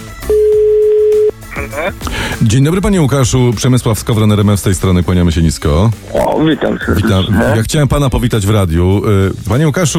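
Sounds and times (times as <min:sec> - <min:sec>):
telephone ringing tone of outgoing call: 0:00.2 - 0:01.4
speech: 0:01.8 - 0:09.9.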